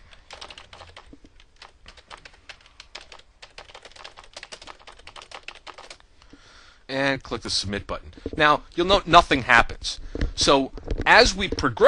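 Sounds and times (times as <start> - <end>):
typing on a computer keyboard to fill in a form: 0.2 - 6.0
speech: 6.9 - 11.8.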